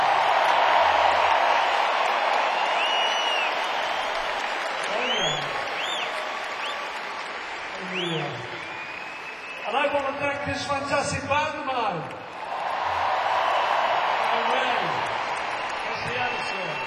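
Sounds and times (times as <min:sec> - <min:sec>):
crowd applauding: 0:00.0 - 0:16.8
whoops and whistles: 0:02.6 - 0:04.3, 0:04.9 - 0:06.9, 0:07.8 - 0:10.0, 0:16.0 - 0:16.8
speech: 0:10.0 - 0:12.2.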